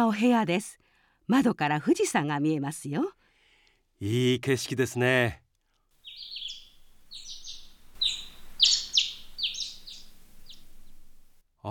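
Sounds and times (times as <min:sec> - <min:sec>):
speech: 0:00.0 - 0:03.2, 0:04.0 - 0:05.4
faint hiss: 0:03.2 - 0:11.6
birds singing outside a room window: 0:06.0 - 0:11.4.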